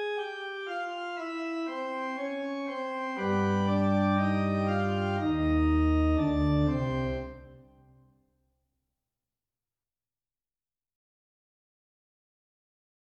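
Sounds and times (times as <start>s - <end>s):
fugue: 0.2s - 7.8s.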